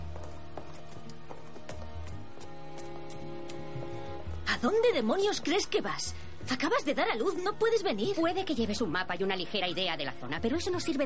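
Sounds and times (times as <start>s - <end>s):
horse hooves clip-clopping: 0.0s - 5.5s
sustained music: 0.0s - 11.0s
speech: 4.6s - 11.0s.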